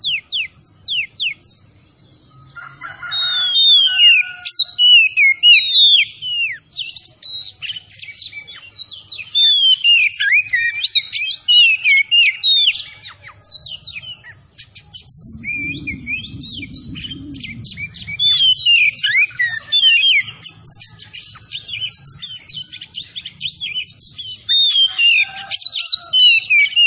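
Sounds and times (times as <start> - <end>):
Oriental magpie-robin song: 0.0 - 26.8
steady high tone: 13.8 - 20.5.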